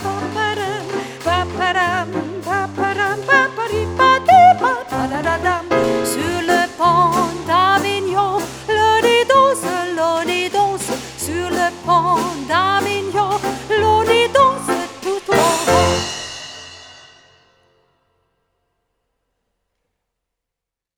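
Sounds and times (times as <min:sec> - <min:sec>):
person singing: 0:00.0 - 0:16.2.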